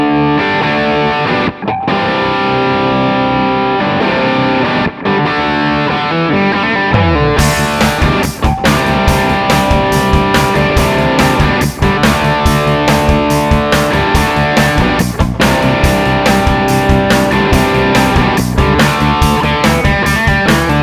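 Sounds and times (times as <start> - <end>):
vintage crunch electric guitar through mic preamp: 0.0 - 20.8
band playing: 7.0 - 20.8.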